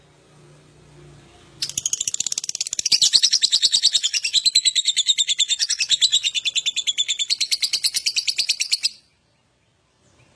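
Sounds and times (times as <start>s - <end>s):
lovebird song of buzzy chatter and harsh chirps: 1.6s - 9.0s.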